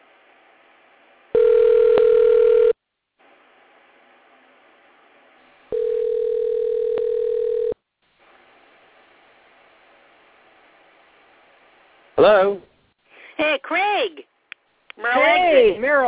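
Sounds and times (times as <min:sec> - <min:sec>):
telephone ringback tone: 0:01.4 - 0:02.8, 0:05.7 - 0:07.8
speech: 0:12.2 - 0:12.7, 0:13.4 - 0:14.3, 0:15.0 - 0:16.0.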